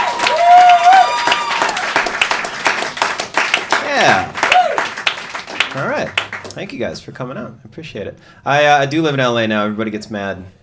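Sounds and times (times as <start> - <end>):
audience clapping: 0.0 - 6.8
speech: 6.6 - 10.6.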